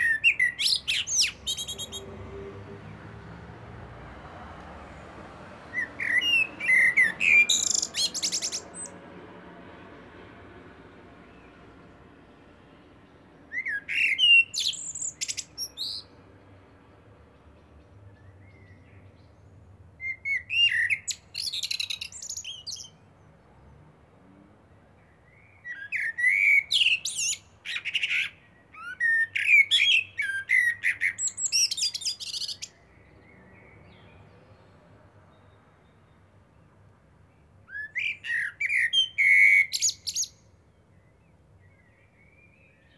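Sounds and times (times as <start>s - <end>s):
common blackbird singing: 0.0s - 3.0s, 5.6s - 9.0s, 13.1s - 16.7s, 17.4s - 23.4s, 24.8s - 36.7s, 37.4s - 42.9s.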